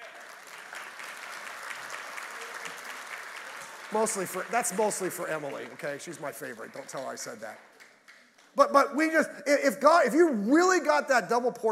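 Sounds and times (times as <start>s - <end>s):
church congregation applauding to welcome returning guests: 0.0s - 9.1s
speech: 3.9s - 7.7s, 8.6s - 11.7s.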